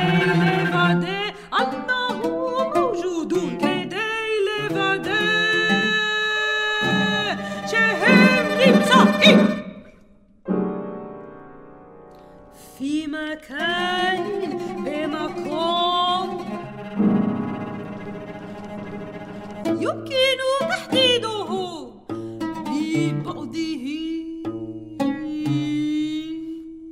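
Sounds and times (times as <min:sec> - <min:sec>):
soprano singing: 0:00.0 - 0:09.9, 0:12.6 - 0:26.9
cello: 0:00.0 - 0:10.0, 0:13.5 - 0:26.4
oud: 0:00.0 - 0:10.0, 0:13.6 - 0:26.5
piano: 0:04.6 - 0:20.0.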